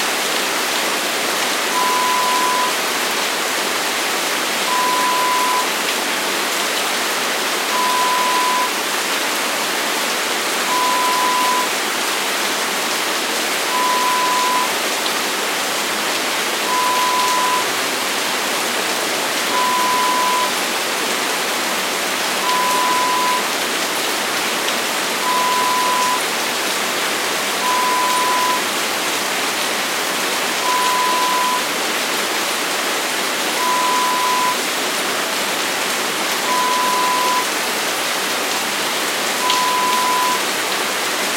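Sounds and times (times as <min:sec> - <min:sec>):
heavy rain: 0:00.0 - 0:41.3.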